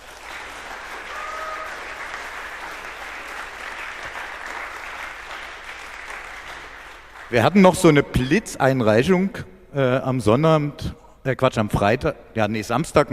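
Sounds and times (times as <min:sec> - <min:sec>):
audience applause: 0:00.0 - 0:07.4
speech: 0:07.3 - 0:13.1.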